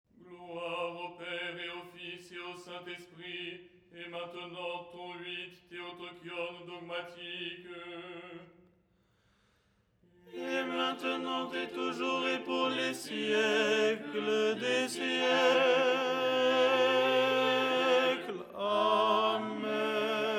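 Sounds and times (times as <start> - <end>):
tenor singing: 10.3 - 20.3.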